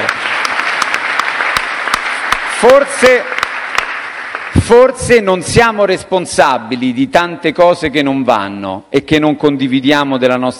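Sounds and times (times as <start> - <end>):
audience applause: 0.0 - 4.8
speech: 2.6 - 3.4, 4.6 - 10.5.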